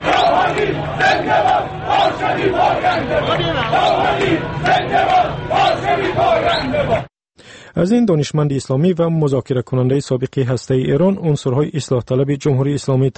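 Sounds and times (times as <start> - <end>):
crowd celebrating election victory in the streets: 0.0 - 7.1
speech: 7.8 - 13.1.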